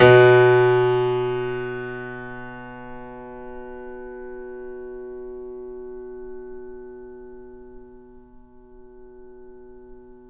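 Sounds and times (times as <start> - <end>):
grand piano off mic: 0.0 - 7.9.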